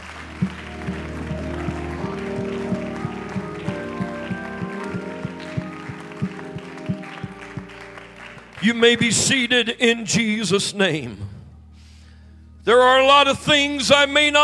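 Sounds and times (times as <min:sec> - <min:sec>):
people clapping: 0:00.0 - 0:09.8
speech: 0:08.6 - 0:11.3, 0:12.7 - 0:14.4.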